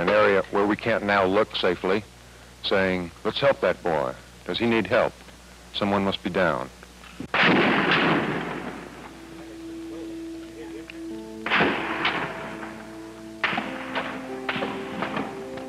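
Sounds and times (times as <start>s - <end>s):
speech: 0.0s - 7.7s
ricochet bullets striking the top of a building: 7.3s - 8.9s, 11.4s - 12.8s, 13.4s - 15.4s
gunfire: 7.3s - 9.1s, 11.4s - 15.4s
faint tonal ringing: 8.6s - 15.6s.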